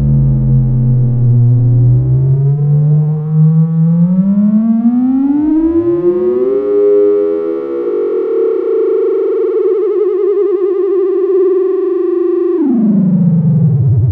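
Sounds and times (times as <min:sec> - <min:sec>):
front drum theremin: 0:00.0 - 0:14.1.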